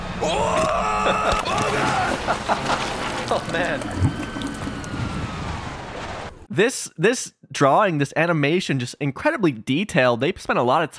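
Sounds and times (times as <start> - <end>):
laughter: 0.2 - 3.8
speech: 0.2 - 4.2, 6.6 - 10.9
toilet flushing: 1.8 - 5.4.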